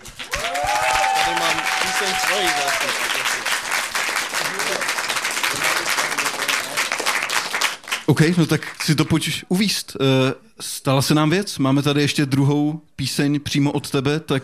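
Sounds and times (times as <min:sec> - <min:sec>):
audience applause: 0:00.0 - 0:09.0
speech: 0:08.1 - 0:14.4.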